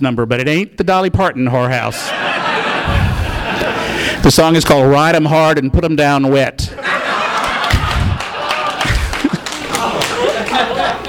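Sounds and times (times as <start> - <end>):
speech: 0.0 - 2.4, 4.2 - 6.9
laughter: 2.0 - 4.2, 6.7 - 11.0
audience applause: 7.0 - 11.0.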